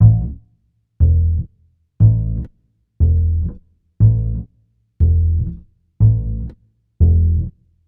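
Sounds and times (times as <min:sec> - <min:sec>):
upright bass in Ukrainian Gypsy style: 0:00.0 - 0:07.6.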